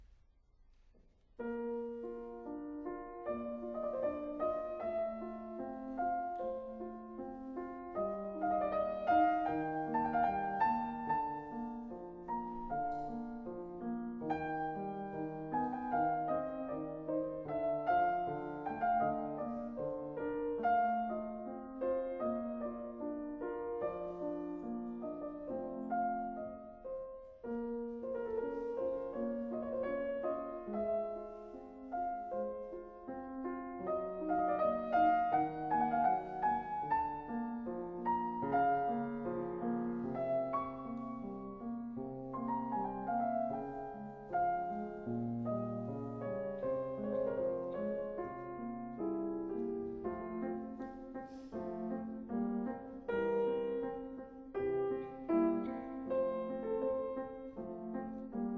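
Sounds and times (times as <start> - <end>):
sonata in F major: 0.0 - 58.5.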